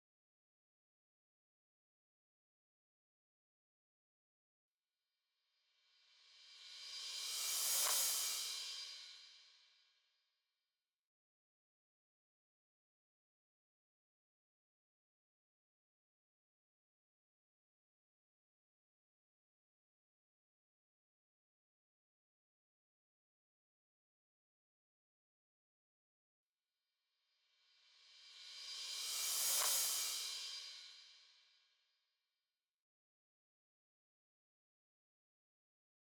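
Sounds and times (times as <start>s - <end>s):
hi-hat: 6.2s - 9.5s, 27.8s - 31.4s.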